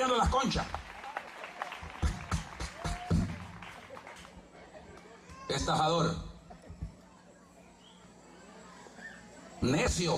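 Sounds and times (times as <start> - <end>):
speech: 0.0 - 0.9, 5.5 - 6.3, 9.6 - 10.1
weak scattered applause: 0.0 - 5.5.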